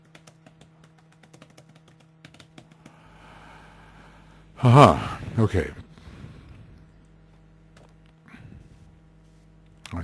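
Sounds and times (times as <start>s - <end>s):
writing taps and clicks: 0.0s - 3.0s
speech: 4.6s - 5.8s.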